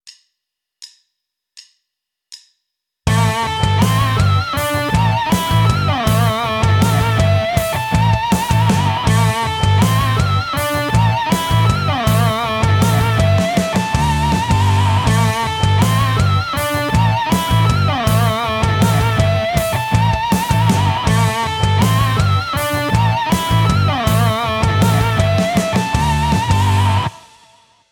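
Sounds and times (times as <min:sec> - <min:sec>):
guitar tapped harmonics: 0:03.1 - 0:27.6.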